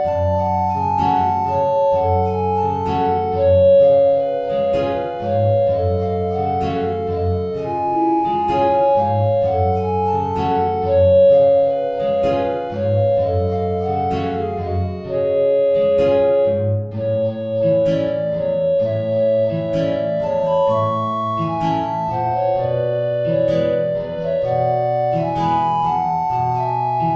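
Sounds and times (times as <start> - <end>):
guitar: 0.0 - 27.1
tango played on two alto recorders: 0.0 - 27.1.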